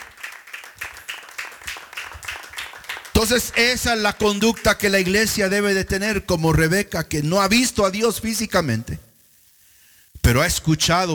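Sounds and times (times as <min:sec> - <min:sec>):
church congregation clapping in unison: 0:00.0 - 0:06.0
speech: 0:03.2 - 0:09.0, 0:10.3 - 0:11.1.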